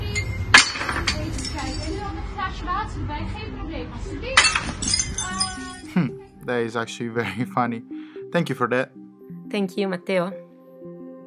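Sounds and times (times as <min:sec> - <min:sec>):
glasses and dishes crashing and shattering: 0:00.2 - 0:02.0, 0:04.4 - 0:06.0
speech: 0:02.8 - 0:10.4
laughter: 0:05.9 - 0:06.2, 0:07.2 - 0:07.6.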